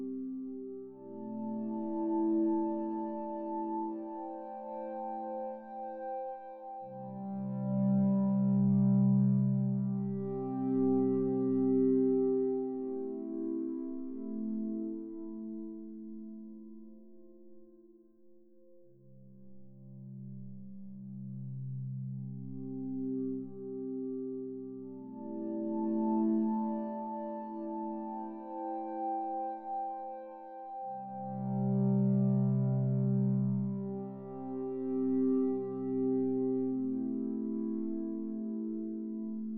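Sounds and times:
woodwind pad ambience: 0.0s - 16.4s, 22.2s - 39.5s.

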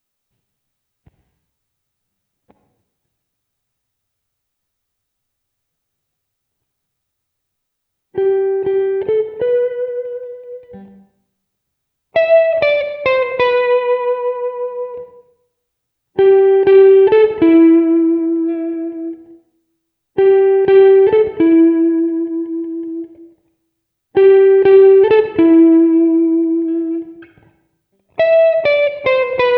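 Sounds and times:
lush guitar: 8.2s - 11.2s, 12.2s - 15.4s, 16.2s - 19.5s, 20.2s - 23.5s, 24.2s - 29.5s.

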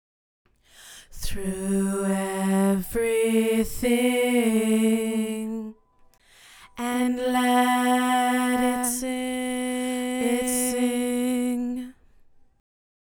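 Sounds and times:
backup vocals: 1.0s - 5.8s, 6.6s - 12.0s.

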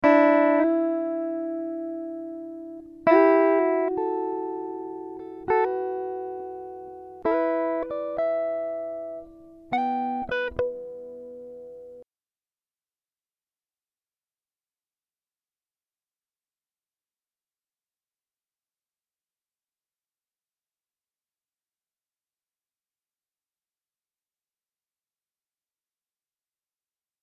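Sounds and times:
guitar riffs in E minor at 100 BPM: 0.0s - 12.0s.

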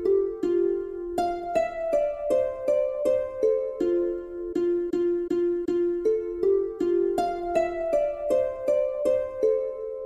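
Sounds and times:
harp melody loop: 0.0s - 10.0s.

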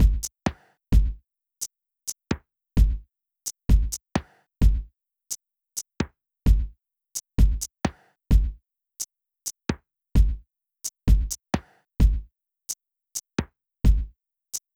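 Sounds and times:
drums: 0.0s - 1.2s, 2.3s - 3.0s, 3.7s - 6.7s, 7.4s - 8.6s, 10.2s - 12.3s, 13.1s - 14.7s.

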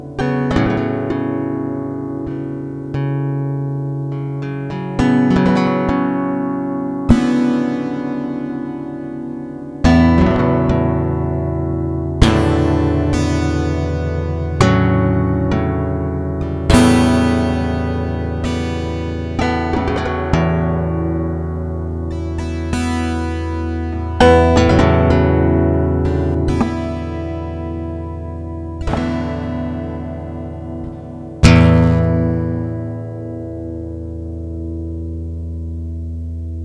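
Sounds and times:
two guitars improvising: 0.0s - 36.6s.

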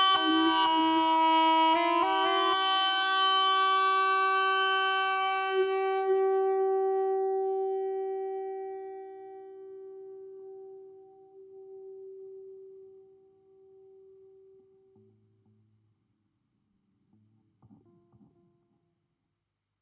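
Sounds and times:
ebow guitar: 0.0s - 15.7s.

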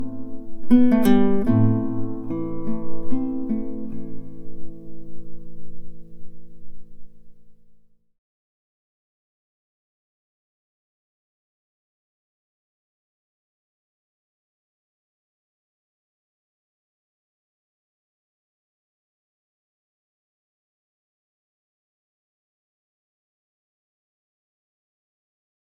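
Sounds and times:
guitar: 0.0s - 7.9s.

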